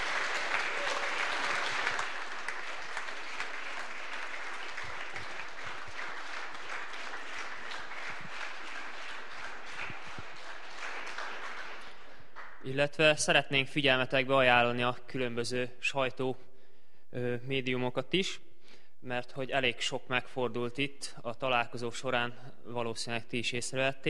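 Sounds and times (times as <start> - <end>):
crowd applauding: 0.0 - 12.7
speech: 12.7 - 16.5, 17.2 - 24.0.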